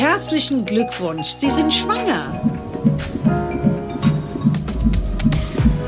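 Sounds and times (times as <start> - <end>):
speech: 0.2 - 3.4
fetal heartbeat on an ultrasound monitor: 1.6 - 5.8.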